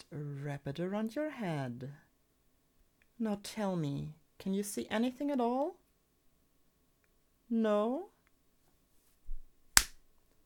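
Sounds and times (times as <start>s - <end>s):
speech: 0.0s - 2.1s, 3.2s - 5.8s, 7.5s - 8.1s
slap on a face: 9.8s - 10.0s.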